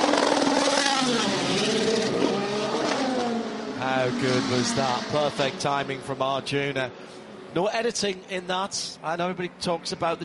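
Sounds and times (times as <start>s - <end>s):
Aston Martin Valkyrie V12 engine screaming as the car pulls away: 0.0s - 5.7s
speech: 4.0s - 10.2s.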